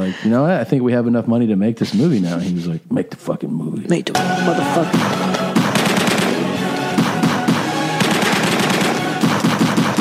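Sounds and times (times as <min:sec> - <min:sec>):
speech: 0:00.0 - 0:05.4
gunshots in a film: 0:04.9 - 0:09.9.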